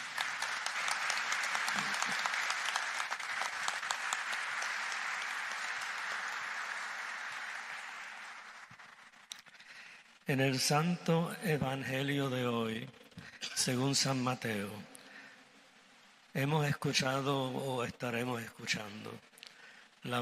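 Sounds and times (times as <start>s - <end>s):
audience applause: 0.0s - 10.2s
speech: 10.3s - 13.0s, 13.6s - 14.9s, 16.4s - 19.3s, 20.0s - 20.2s.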